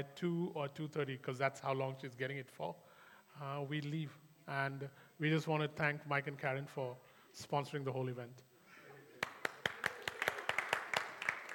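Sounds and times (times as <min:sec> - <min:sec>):
speech: 0:00.0 - 0:08.5
clapping in a church: 0:09.2 - 0:11.5.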